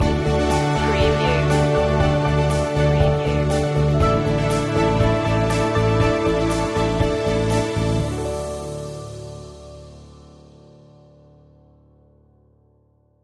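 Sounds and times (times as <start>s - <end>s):
musical stinger: 0.0s - 10.2s.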